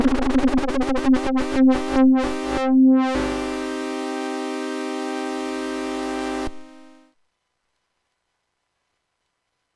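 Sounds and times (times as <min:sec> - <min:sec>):
synthesized sound generated with an LFO: 0:00.0 - 0:07.0.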